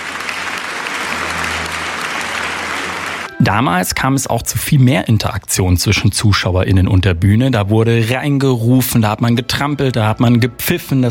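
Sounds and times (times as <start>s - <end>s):
audience applause: 0.0s - 3.3s
speech: 3.4s - 11.0s.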